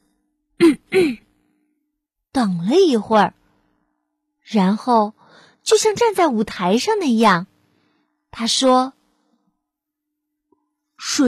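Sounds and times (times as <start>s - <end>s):
person clearing throat: 0.6s - 1.3s
speech: 0.9s - 1.2s, 2.4s - 3.4s, 4.5s - 7.5s, 8.4s - 9.0s, 11.0s - 11.2s.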